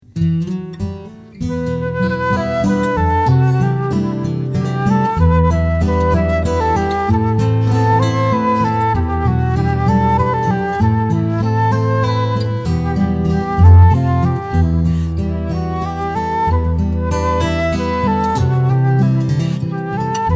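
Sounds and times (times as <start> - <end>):
waltz music: 1.8 - 20.3.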